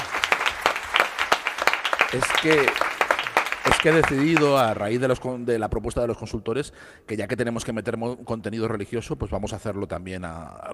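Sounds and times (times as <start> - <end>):
applause: 0.0 - 5.2
speech: 2.1 - 2.9, 3.7 - 10.7.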